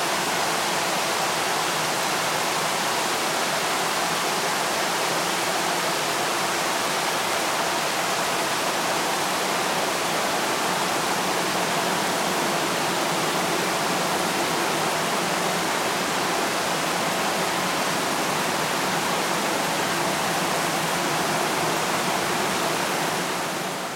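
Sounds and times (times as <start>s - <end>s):
rain pouring on a tin roof: 0.0s - 23.9s.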